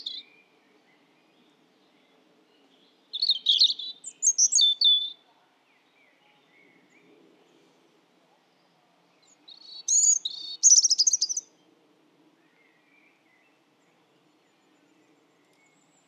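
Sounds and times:
European robin singing: 0.0s - 0.5s, 2.6s - 5.2s, 9.2s - 11.5s.

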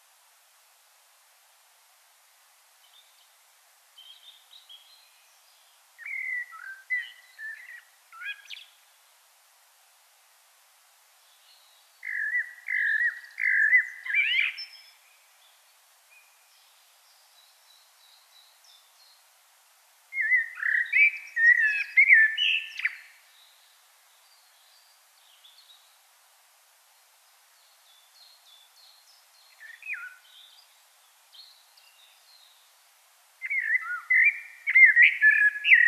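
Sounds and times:
common blackbird singing: 6.0s - 8.7s, 12.0s - 15.0s, 20.2s - 23.1s, 29.5s - 30.6s, 33.4s - 35.8s.

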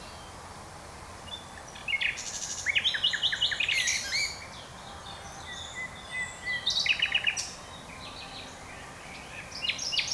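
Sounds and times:
Common nightingale singing: 1.2s - 10.1s.

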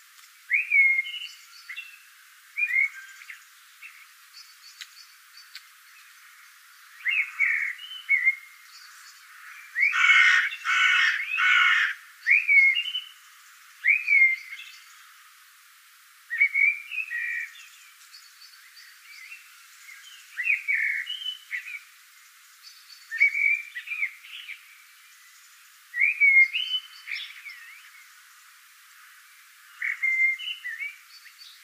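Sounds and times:
Eurasian blackbird fluted song: 0.4s - 6.2s, 6.8s - 15.1s, 16.3s - 21.9s, 22.6s - 28.2s, 29.7s - 31.6s
faint clicks: 4.7s - 5.7s.

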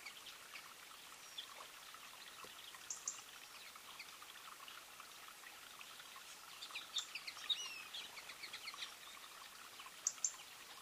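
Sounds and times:
European robin ticking calls: 0.0s - 4.2s, 6.1s - 10.7s
faint twittering birdsong: 0.0s - 10.7s.

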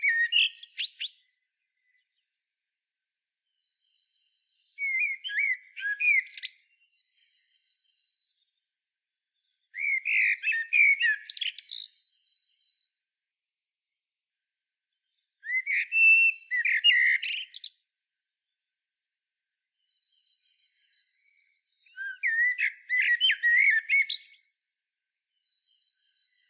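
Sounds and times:
common blackbird singing: 0.0s - 2.3s, 3.6s - 8.4s, 9.4s - 12.9s, 15.1s - 17.8s, 19.8s - 24.5s.

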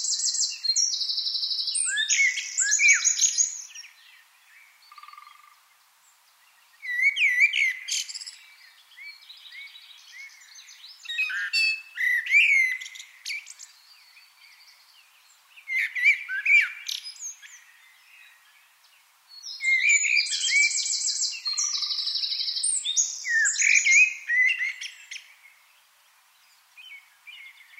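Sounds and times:
Eurasian wren song: 0.0s - 25.8s.

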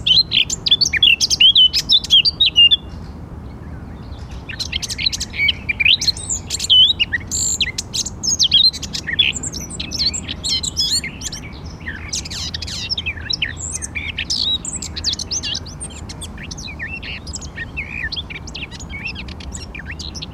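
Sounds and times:
Eurasian blackcap warbling song: 0.0s - 20.3s.

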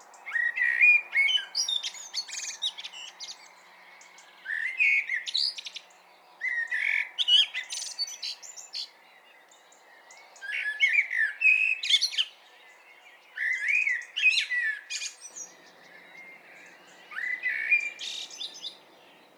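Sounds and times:
common blackbird singing: 0.0s - 19.3s.

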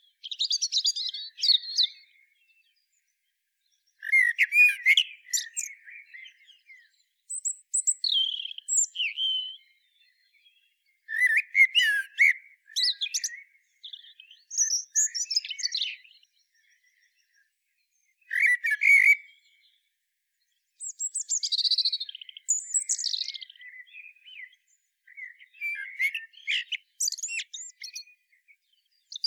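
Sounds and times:
common blackbird singing: 0.0s - 29.2s.

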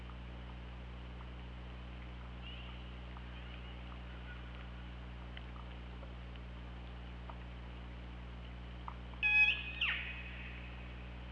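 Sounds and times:
faint low hum: 0.0s - 11.2s
killer whale calls: 9.2s - 10.6s.

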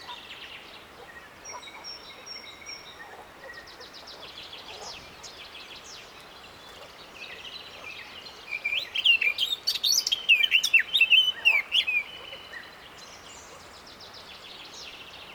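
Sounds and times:
Eurasian blackcap (Sylvia atricapilla) song of rich varied warbling: 8.6s - 12.6s.

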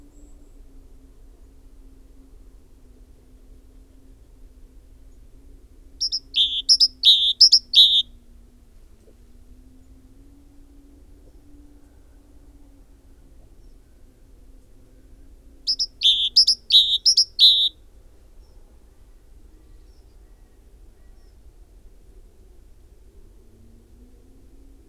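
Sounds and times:
great tit singing: 6.0s - 8.0s, 15.7s - 17.7s.

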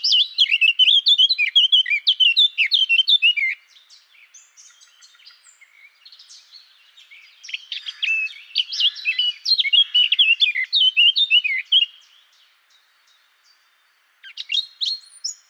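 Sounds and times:
Eurasian blackcap Sylvia atricapilla singing a fast varied warble: 0.0s - 12.2s.

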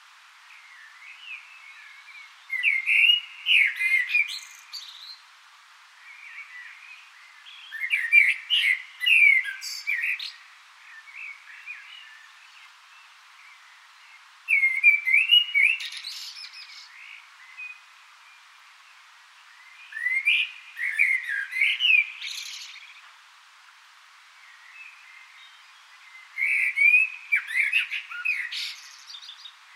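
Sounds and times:
common blackbird song: 0.7s - 5.2s, 6.1s - 12.7s, 14.5s - 17.8s, 19.6s - 23.1s, 24.6s - 29.7s.

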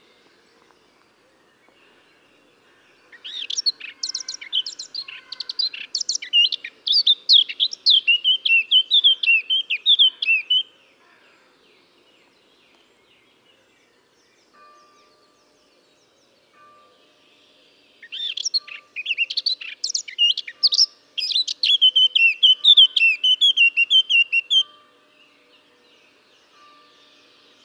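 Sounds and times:
Eurasian blackcap singing: 3.1s - 10.7s, 18.0s - 24.7s.

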